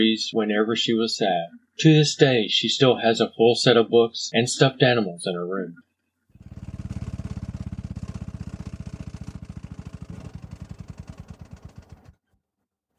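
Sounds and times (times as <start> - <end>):
speech: 0.0 - 5.8
car engine dying: 6.4 - 12.2.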